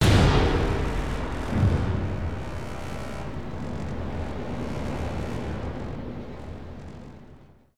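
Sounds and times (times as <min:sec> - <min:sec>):
bang: 0:00.0 - 0:04.9.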